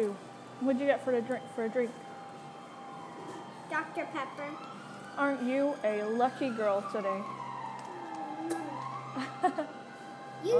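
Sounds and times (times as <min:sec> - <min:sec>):
speech: 0:00.0 - 0:02.1, 0:03.7 - 0:07.4, 0:09.2 - 0:09.8
faint siren wailing outside: 0:00.0 - 0:10.5.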